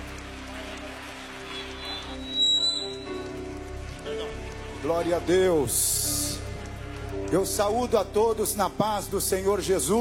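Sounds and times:
audience applause: 0.0s - 9.9s
speech: 4.8s - 6.1s, 7.3s - 9.9s.

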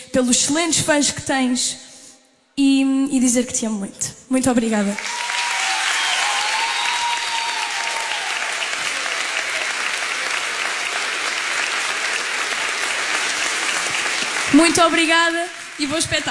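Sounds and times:
speech: 0.2s - 1.9s, 2.6s - 5.2s, 14.6s - 16.2s
audience applause: 5.0s - 16.2s.

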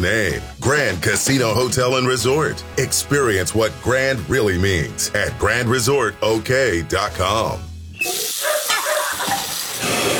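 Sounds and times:
speech: 0.0s - 8.2s
water running from a sink faucet: 8.0s - 10.1s.

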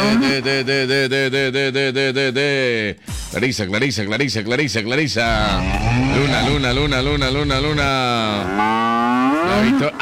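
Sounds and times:
speech: 0.0s - 10.0s
tame cow mooing: 5.4s - 6.6s, 8.3s - 9.7s.

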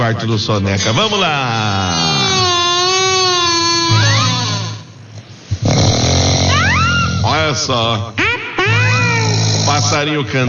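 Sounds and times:
speech: 0.0s - 2.2s, 7.4s - 8.2s, 9.7s - 10.4s
man snoring while asleep: 1.7s - 4.9s, 5.6s - 7.4s, 9.0s - 10.2s.

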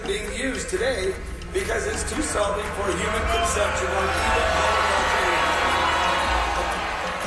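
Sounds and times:
speech: 0.1s - 5.2s
large crowd of protesters booing: 3.4s - 7.2s.

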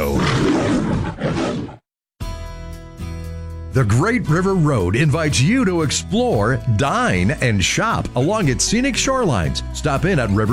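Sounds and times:
lion roaring: 0.0s - 1.8s
speech: 3.8s - 10.5s.

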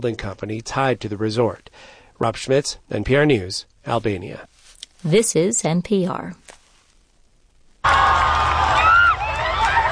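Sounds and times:
speech: 0.0s - 6.5s
vast crowd cheering in the streets of Madrid welcoming Pope Leo: 7.8s - 9.9s.

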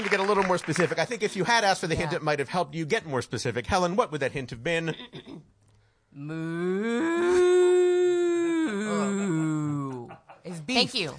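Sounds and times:
speech: 0.1s - 5.4s, 6.2s - 7.6s, 10.4s - 11.1s
person imitating a cow mooing: 6.2s - 10.2s.

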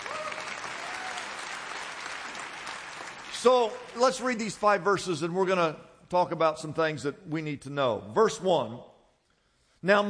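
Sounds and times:
audience clapping: 0.0s - 4.9s
speech: 3.4s - 8.9s, 9.8s - 10.0s.

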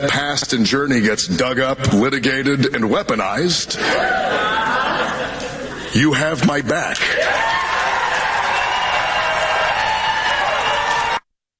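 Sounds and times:
speech: 0.0s - 4.8s, 5.9s - 7.6s
laughter: 3.8s - 6.0s
crowd clapping and cheering: 7.0s - 11.2s
whoops: 7.1s - 11.2s.

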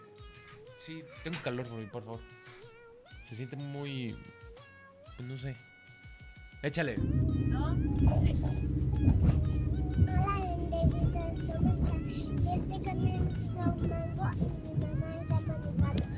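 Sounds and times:
child speaking: 0.7s - 4.8s, 7.0s - 16.1s
speech: 0.8s - 2.4s, 3.3s - 4.4s, 5.2s - 5.7s, 6.6s - 8.7s, 12.5s - 16.1s
car engine rumble heard from inside a car being driven: 7.0s - 16.1s.

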